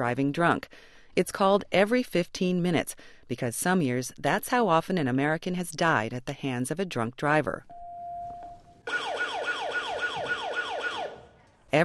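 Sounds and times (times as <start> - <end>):
speech: 0.0 - 7.8
emergency siren alarm: 7.7 - 11.4.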